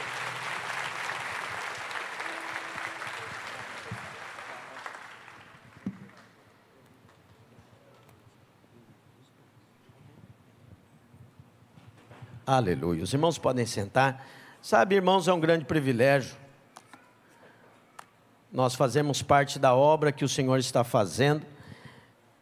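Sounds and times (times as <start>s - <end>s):
congregation clapping in a church service: 0.0s - 6.5s
speech: 12.5s - 16.4s, 18.6s - 21.5s.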